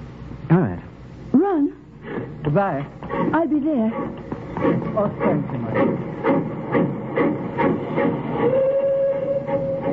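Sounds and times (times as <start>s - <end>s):
speech: 2.5s - 6.1s
departing steam train chuffing: 3.9s - 9.9s
sustained held tone: 8.4s - 9.9s.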